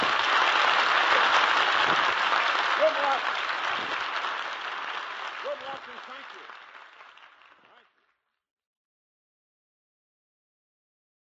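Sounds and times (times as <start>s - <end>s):
studio audience applause welcoming guests on a 1948 New Year's radio program: 0.0s - 8.1s.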